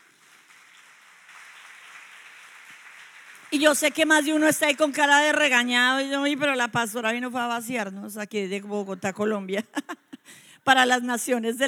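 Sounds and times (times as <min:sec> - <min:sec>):
audience applause: 0:00.0 - 0:03.9
speech: 0:03.5 - 0:11.6.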